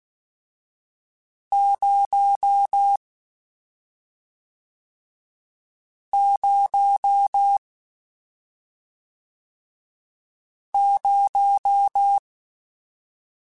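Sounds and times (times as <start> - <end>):
Morse code CW code groups: 1.5 - 3.0, 6.2 - 7.6, 10.8 - 12.2.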